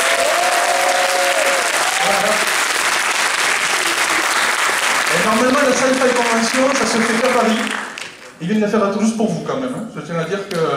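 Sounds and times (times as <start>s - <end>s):
audience applause: 0.0s - 8.4s
speech: 5.8s - 7.8s, 8.4s - 10.7s.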